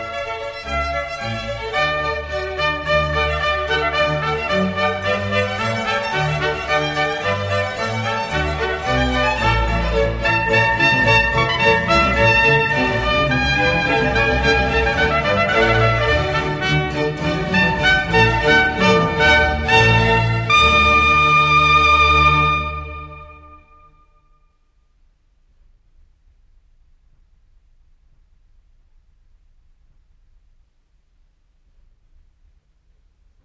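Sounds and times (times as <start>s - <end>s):
trumpet concerto with orchestra in D: 0.0s - 24.4s.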